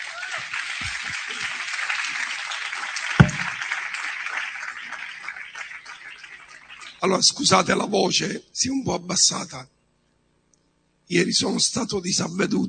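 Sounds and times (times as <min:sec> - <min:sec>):
audience applause: 0:00.0 - 0:06.8
speech: 0:07.0 - 0:09.8, 0:11.1 - 0:12.6.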